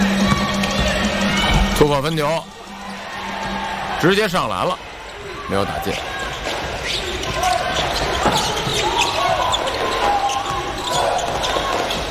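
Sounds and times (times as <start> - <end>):
crowd noise: 0.0 - 12.0
basketball dribbling during a game against Australia's team: 0.1 - 1.7, 6.2 - 12.0
speech: 1.8 - 2.6, 4.0 - 4.9, 5.5 - 6.2.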